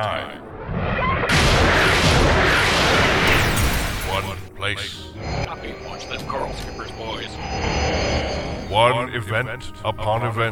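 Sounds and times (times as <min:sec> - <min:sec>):
speech: 0:00.0 - 0:00.5, 0:04.2 - 0:10.5
heavy weapon firing: 0:01.3 - 0:04.4.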